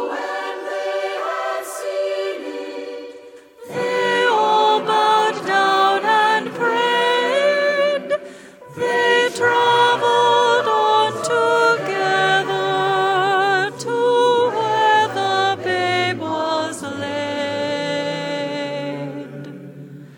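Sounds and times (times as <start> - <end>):
mezzo-soprano singing: 0.0 - 19.5.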